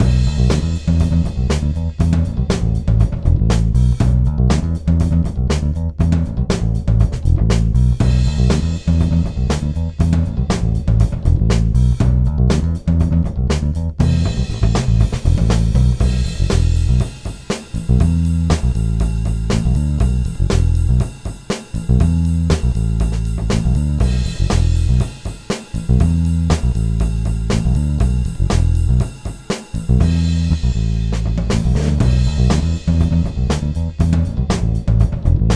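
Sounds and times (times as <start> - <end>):
realistic drums: 0.0 - 35.5.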